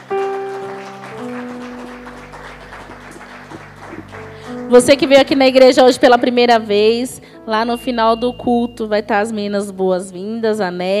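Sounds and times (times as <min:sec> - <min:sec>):
church crowd clapping: 0:00.0 - 0:05.7
sustained keyboard chords: 0:00.0 - 0:10.4
speech: 0:04.7 - 0:10.9.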